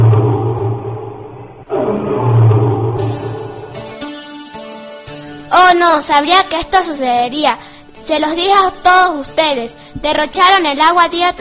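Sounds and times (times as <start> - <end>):
loud thunderous roar: 0.0 - 4.0
speech: 5.8 - 11.3.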